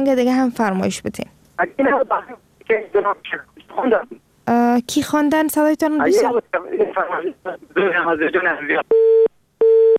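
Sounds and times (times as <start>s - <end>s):
speech: 0.0s - 9.3s
phone busy tone after a dropped call: 8.9s - 9.9s.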